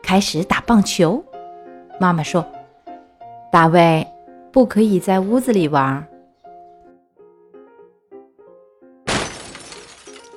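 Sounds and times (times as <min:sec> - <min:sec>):
speech: 0:00.1 - 0:01.3, 0:02.0 - 0:02.6, 0:03.5 - 0:06.1
vase shattering: 0:09.1 - 0:10.3.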